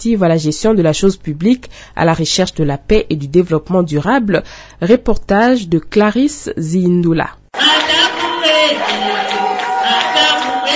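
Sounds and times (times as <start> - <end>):
speech: 0.0 - 10.7
crowd singing: 7.6 - 10.7
joyful cries: 7.6 - 10.7.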